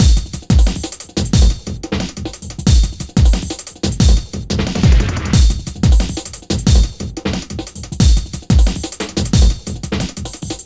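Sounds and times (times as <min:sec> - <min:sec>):
processed beat with drums and percussion: 0:00.0 - 0:10.6.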